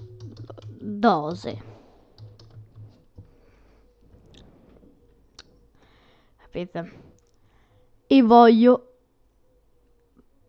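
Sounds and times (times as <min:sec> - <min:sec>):
typing on a computer keyboard: 0:00.0 - 0:03.6
speech: 0:00.9 - 0:01.7, 0:06.5 - 0:07.1, 0:08.1 - 0:08.9.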